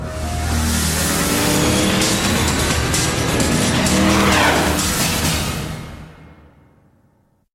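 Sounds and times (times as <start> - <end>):
vehicons attacking: 0.7 - 5.7.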